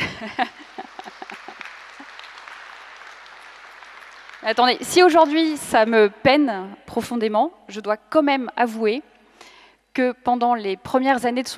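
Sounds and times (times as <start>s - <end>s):
laughter: 0.0s - 2.2s
audience applause: 0.0s - 4.9s
speech: 0.2s - 0.6s, 4.4s - 11.5s.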